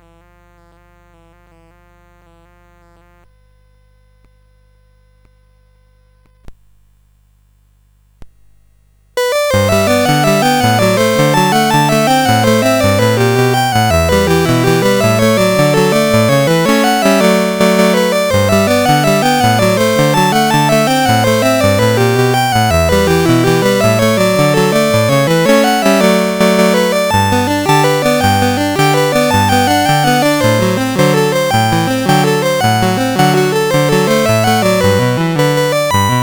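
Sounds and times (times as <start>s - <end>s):
CSG 8580 sound chip: 9.2s - 36.2s.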